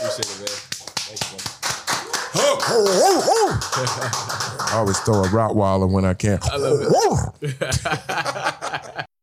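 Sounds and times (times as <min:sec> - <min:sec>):
round of applause: 0:00.0 - 0:05.5
speech: 0:00.2 - 0:01.7, 0:02.4 - 0:09.1
laughter: 0:02.3 - 0:05.3, 0:06.5 - 0:09.1.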